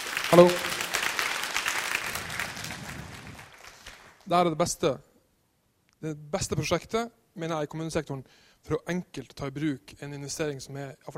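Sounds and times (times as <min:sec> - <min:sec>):
audience clapping: 0:00.0 - 0:04.3
speech: 0:00.3 - 0:00.6, 0:04.3 - 0:05.1, 0:06.0 - 0:11.1.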